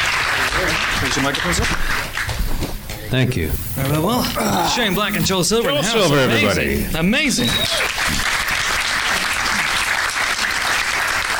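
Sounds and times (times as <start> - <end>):
audience applause: 0.0 - 2.4, 7.6 - 11.3
speech: 1.0 - 2.2, 3.1 - 8.2.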